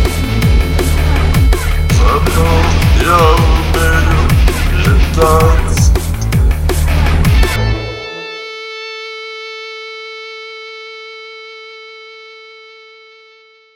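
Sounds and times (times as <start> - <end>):
hard style drum and bass remix: 0.0 - 8.4.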